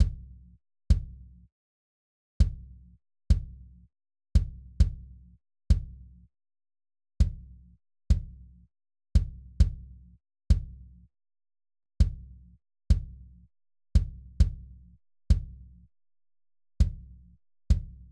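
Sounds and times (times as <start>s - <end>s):
kick drum: 0.0s - 0.3s, 0.9s - 1.2s, 2.4s - 2.6s, 3.3s - 3.6s, 4.4s - 5.0s, 5.7s - 6.0s, 7.2s - 7.4s, 8.1s - 8.4s, 9.2s - 9.8s, 10.5s - 10.8s, 12.0s - 12.3s, 12.9s - 13.2s, 14.0s - 14.7s, 15.3s - 15.7s, 16.8s - 17.1s, 17.7s - 18.1s.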